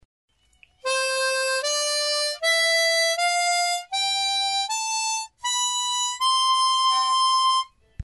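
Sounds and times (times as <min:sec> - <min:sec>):
chromatic harmonica playing a C major scale: 0:00.8 - 0:07.8.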